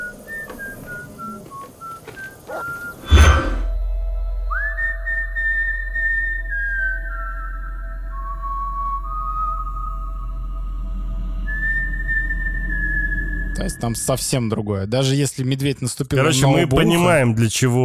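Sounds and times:
whistled melody: 0:00.0 - 0:14.2
low steady hum: 0:03.0 - 0:14.5
speech: 0:13.6 - 0:17.8.

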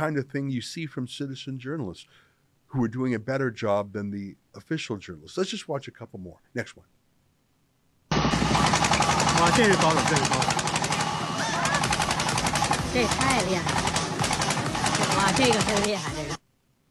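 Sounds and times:
speech: 0:00.0 - 0:07.0, 0:09.4 - 0:10.6, 0:13.0 - 0:13.9, 0:15.4 - 0:16.4
vehicle spraying anti-COVID disinfectant driving down a street: 0:08.1 - 0:15.9.

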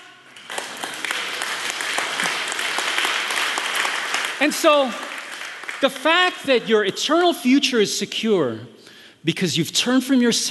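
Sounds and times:
audience clapping: 0:00.2 - 0:06.6
speech: 0:04.4 - 0:05.1, 0:05.8 - 0:10.5.

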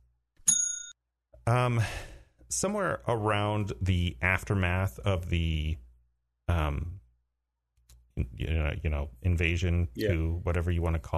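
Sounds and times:
spoiler bell ding: 0:00.4 - 0:01.0
speech: 0:01.5 - 0:05.8, 0:06.5 - 0:07.0, 0:08.2 - 0:11.1.

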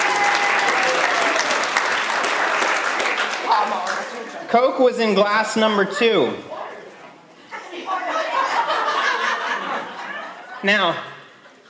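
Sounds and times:
crowd applause: 0:00.0 - 0:04.5
speech: 0:04.5 - 0:06.5, 0:10.6 - 0:11.1
laughter: 0:07.4 - 0:11.6.

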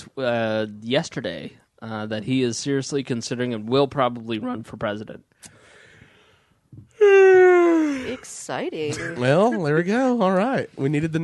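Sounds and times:
speech: 0:00.2 - 0:05.6, 0:06.7 - 0:11.2
breathy inhale: 0:05.5 - 0:06.6
person yawning: 0:07.0 - 0:08.2.

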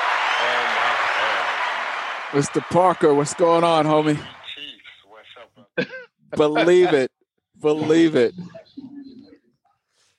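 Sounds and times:
round of applause: 0:00.0 - 0:04.7
speech: 0:00.4 - 0:01.1, 0:02.3 - 0:04.4, 0:05.8 - 0:08.9.

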